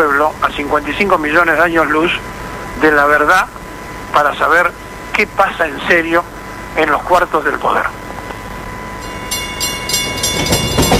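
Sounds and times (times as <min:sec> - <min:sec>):
speech: 0:00.0 - 0:08.0
constant mechanical hum: 0:00.0 - 0:10.9
train wheels clattering over track joints: 0:09.0 - 0:10.9.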